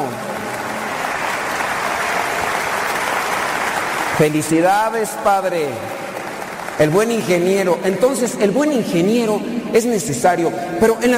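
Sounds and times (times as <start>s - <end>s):
crowd clapping: 0.0s - 8.3s
speech: 4.2s - 6.0s, 6.8s - 11.1s.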